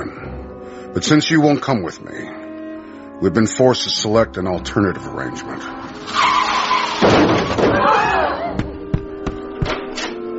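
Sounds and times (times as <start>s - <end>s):
speech: 0.9s - 2.4s, 3.2s - 6.3s
car tires screeching in a skid: 5.7s - 8.5s
agitated crowd voices and shouts: 7.7s - 8.6s
sharp thuds of impact: 8.5s - 10.0s.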